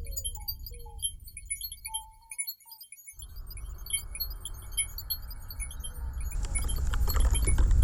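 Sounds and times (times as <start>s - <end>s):
shared soundscape: 3.2s - 7.8s.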